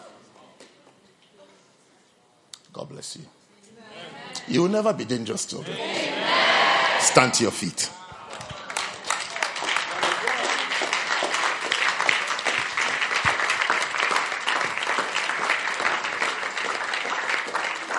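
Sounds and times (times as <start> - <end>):
speech: 2.8 - 3.4, 4.5 - 6.4, 7.0 - 8.0
large audience clapping: 8.2 - 17.9.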